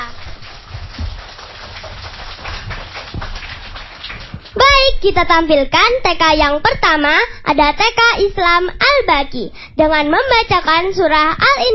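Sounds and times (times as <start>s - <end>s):
audience applause: 0.0s - 4.6s
speech: 5.0s - 11.7s.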